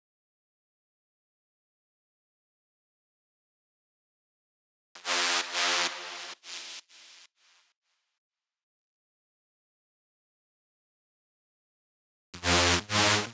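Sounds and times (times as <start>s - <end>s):
FM synth lead loop in tribal house: 12.4s - 13.3s.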